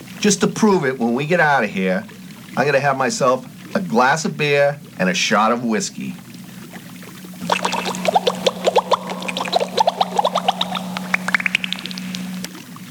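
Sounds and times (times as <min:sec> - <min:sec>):
speech: 0:00.2 - 0:06.2
water splash: 0:07.4 - 0:12.6.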